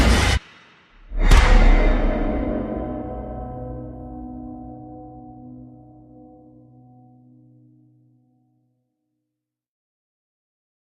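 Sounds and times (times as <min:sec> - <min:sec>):
scary sounds: 0:01.0 - 0:06.5.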